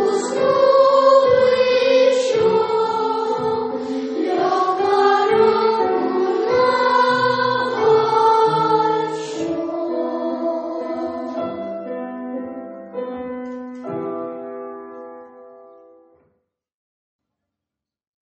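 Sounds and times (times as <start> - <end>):
first-grade children's choir singing: 0.0 - 12.2.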